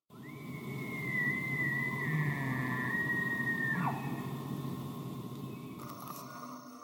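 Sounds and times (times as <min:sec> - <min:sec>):
cervid bugling: 0:01.3 - 0:06.2.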